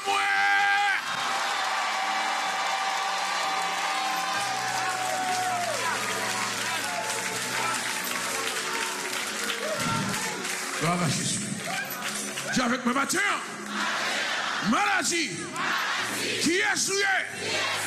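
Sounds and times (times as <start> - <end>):
audience applauding: 0.9 - 14.4
speech: 11.0 - 11.4, 12.6 - 13.6, 14.6 - 17.8.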